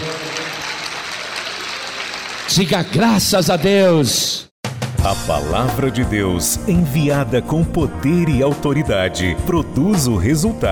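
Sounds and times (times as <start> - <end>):
crowd applauding: 0.0 - 3.6
speech: 2.5 - 10.6.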